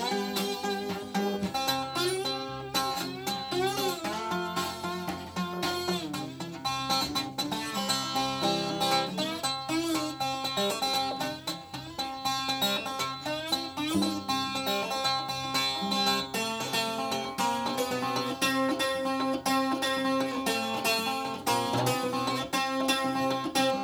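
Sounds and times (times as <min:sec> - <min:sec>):
Vox V240 Folk Twelve Electro 12-string electric and acoustic guitar c 1967: 0:00.0 - 0:23.8.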